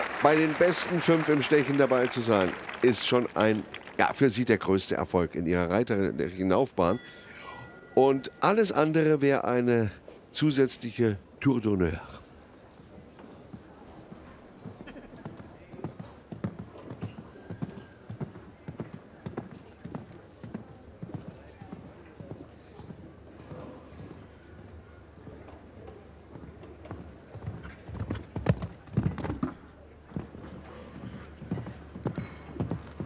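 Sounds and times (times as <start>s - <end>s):
speech: 0.2s - 7.2s, 8.0s - 12.2s
horse hooves clip-clopping: 13.1s - 24.7s, 25.4s - 33.0s.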